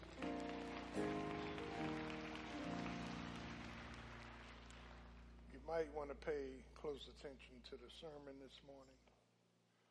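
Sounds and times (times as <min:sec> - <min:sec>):
audience clapping hands: 0:00.0 - 0:05.8
speech: 0:05.7 - 0:09.1.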